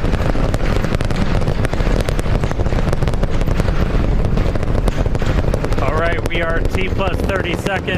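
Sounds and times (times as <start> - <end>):
Raptor 3 rocket booster engines roaring during launch ascent: 0.0 - 7.9
speech: 6.6 - 7.9.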